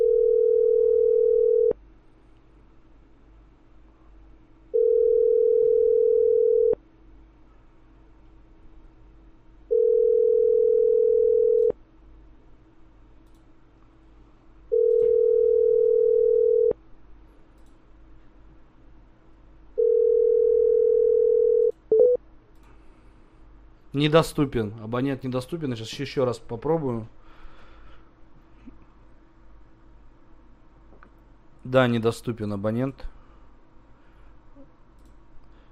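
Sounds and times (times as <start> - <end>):
telephone ringback tone beeps while a call is placed: 0.0 - 1.7, 4.8 - 6.8, 9.7 - 11.7, 14.7 - 16.7, 19.8 - 22.2
speech: 24.0 - 27.2, 31.7 - 33.2.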